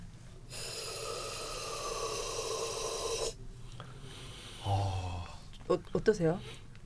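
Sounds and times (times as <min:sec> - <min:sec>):
oxygen hissing from a portable can: 0:00.5 - 0:03.4
person breathing in through a mask: 0:00.5 - 0:05.2
speech: 0:05.7 - 0:06.6.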